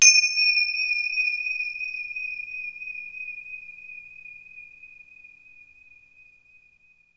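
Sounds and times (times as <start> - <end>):
Synclavier finger cymbal percussion: 0.0 - 5.0.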